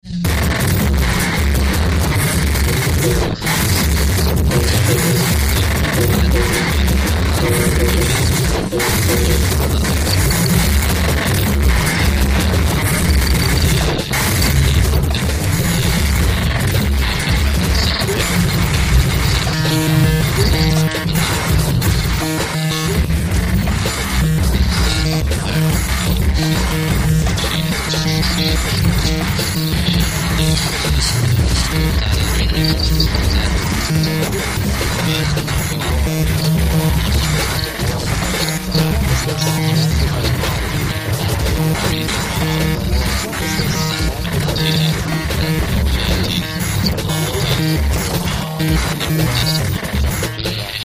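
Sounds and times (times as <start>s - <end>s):
electronic micropulse: 0.0s - 50.8s.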